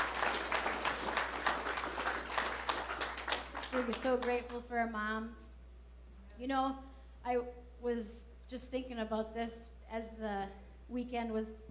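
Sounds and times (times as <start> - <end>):
crowd applause: 0.0 - 4.4
speech: 3.8 - 5.5, 6.4 - 11.7.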